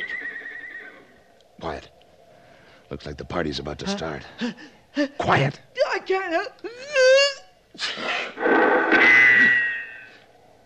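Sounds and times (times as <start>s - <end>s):
speech: 2.9s - 7.2s, 7.9s - 8.6s
person sneezing: 7.8s - 8.4s.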